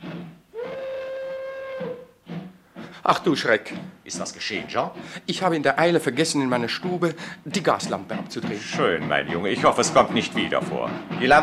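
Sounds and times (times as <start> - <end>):
steam train whistle at Charing Cross railway station: 0.0 - 2.5
breathy steam hiss: 2.1 - 5.4, 6.9 - 7.6
speech: 3.0 - 11.4.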